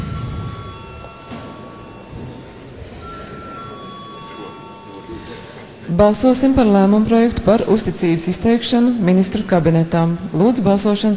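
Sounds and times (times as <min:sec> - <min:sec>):
parliament session electric bell ringing: 0:00.0 - 0:07.3
low murmur of voices: 0:00.0 - 0:11.1
speech: 0:05.9 - 0:11.1.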